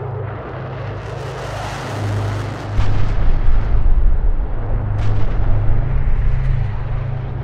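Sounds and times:
bomber aircraft droning: 0:00.0 - 0:07.4
heavy bomb explosions: 0:02.7 - 0:07.4.

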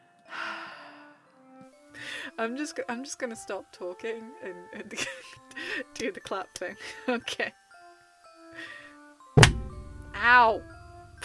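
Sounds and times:
speech: 0:02.2 - 0:07.6, 0:10.2 - 0:11.2
hand hitting a microphone stand: 0:09.4 - 0:10.2.

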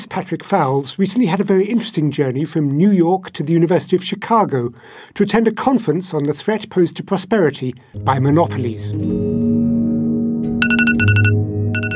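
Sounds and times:
speech: 0:00.0 - 0:09.5
alarm beeping on an Apple handset: 0:10.6 - 0:11.9.

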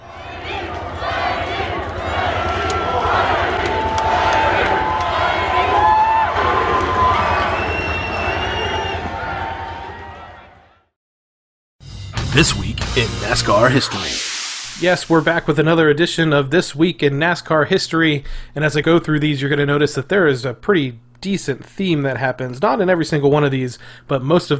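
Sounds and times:
race fans cheering: 0:00.0 - 0:10.9
speech: 0:12.4 - 0:24.5.

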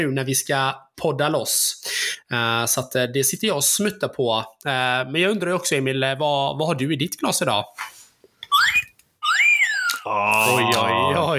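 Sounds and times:
speech: 0:00.0 - 0:08.0, 0:10.0 - 0:11.3
whistling bottle opener opening a bottle: 0:08.5 - 0:10.7.

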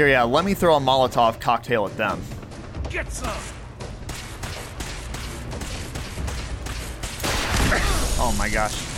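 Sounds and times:
speech: 0:00.0 - 0:03.6, 0:08.2 - 0:08.9
video game missiles firing at the player: 0:05.6 - 0:08.9.

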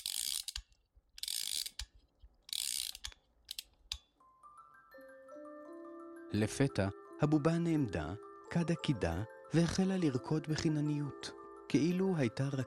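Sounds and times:
key winding a clockwork spring: 0:00.0 - 0:04.1
speech: 0:06.3 - 0:12.6.

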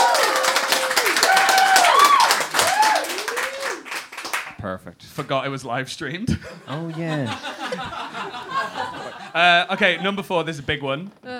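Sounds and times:
people clapping: 0:00.0 - 0:04.6
speech: 0:04.7 - 0:11.3
laughter: 0:06.3 - 0:10.9.

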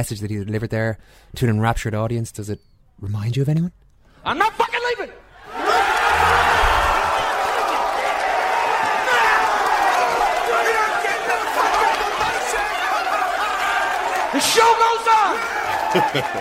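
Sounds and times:
speech: 0:00.0 - 0:05.2, 0:14.4 - 0:16.3
football fans chanting: 0:05.5 - 0:14.4
laughter: 0:15.4 - 0:16.3.

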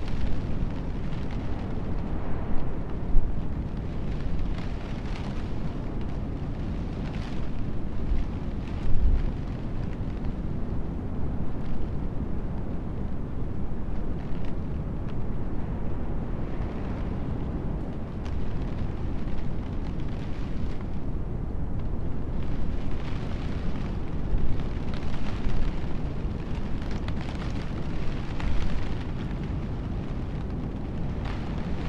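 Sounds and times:
wind and surf roar by the sea heard from inside a camper van: 0:00.0 - 0:31.8.

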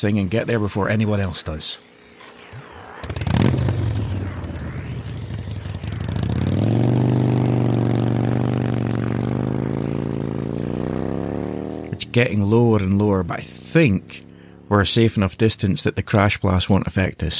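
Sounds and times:
speech: 0:00.0 - 0:01.9, 0:12.2 - 0:17.3
motorcycle engines with sidecars revving as they set off in pursuit: 0:01.8 - 0:15.3.

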